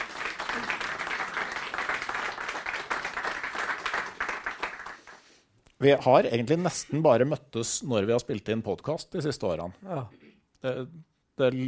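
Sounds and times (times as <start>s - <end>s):
applause for the guest: 0.0s - 5.3s
speech: 5.8s - 11.6s.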